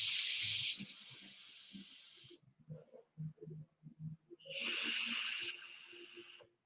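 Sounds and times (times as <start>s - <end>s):
air drawn through a vape atomizer hissing: 0.0s - 2.3s, 4.5s - 6.4s.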